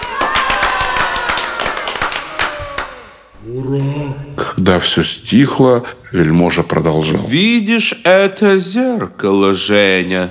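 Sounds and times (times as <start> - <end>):
crowd applauding: 0.0 - 3.4
cheering voices: 0.0 - 4.4
speech: 3.4 - 10.2.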